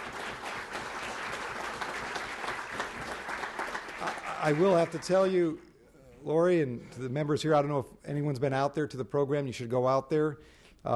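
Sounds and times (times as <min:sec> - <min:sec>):
audience applause: 0:00.0 - 0:05.3
speech: 0:04.4 - 0:10.9.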